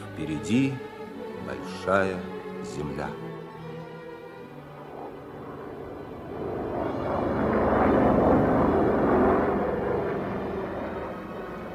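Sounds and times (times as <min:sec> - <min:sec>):
iced-up airplane engine droning in flight 1,500 metres above the ocean: 0:00.0 - 0:11.7
speech: 0:00.2 - 0:00.9, 0:01.5 - 0:03.3.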